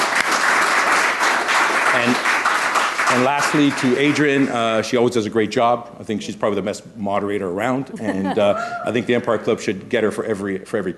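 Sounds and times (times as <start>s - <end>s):
audience applause: 0.0s - 4.6s
speech: 2.0s - 2.4s, 3.1s - 10.9s
laughter: 7.8s - 9.5s.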